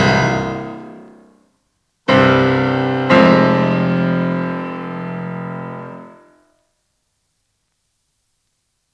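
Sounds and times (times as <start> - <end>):
prelude music: 0.0 - 1.3, 2.1 - 6.2.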